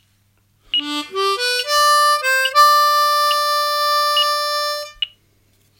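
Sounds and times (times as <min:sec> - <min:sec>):
beginner triplet rhythm pattern: 0:00.8 - 0:05.1.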